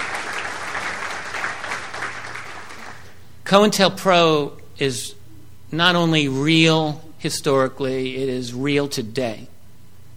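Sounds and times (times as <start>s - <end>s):
crowd applauding: 0.0s - 3.2s
speech: 3.5s - 9.5s.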